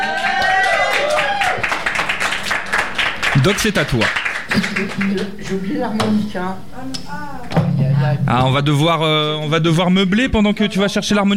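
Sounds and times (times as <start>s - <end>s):
audience applause: 0.0s - 5.6s
speech: 3.4s - 11.3s.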